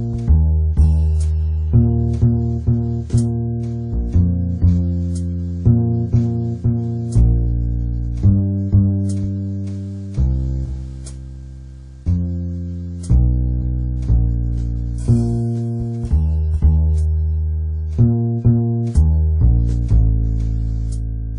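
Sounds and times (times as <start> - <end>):
jazz backing music: 0.0 - 21.3.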